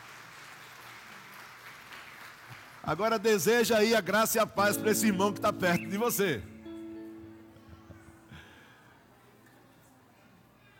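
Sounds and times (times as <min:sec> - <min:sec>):
church congregation applauding during a service: 0:00.0 - 0:06.4
speech: 0:02.8 - 0:06.5.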